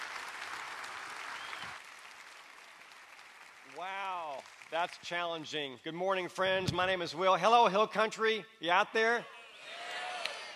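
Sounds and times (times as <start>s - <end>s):
audience applause welcoming a speaker at a Hill Country gathering: 0.0s - 5.0s
speech: 3.8s - 9.4s.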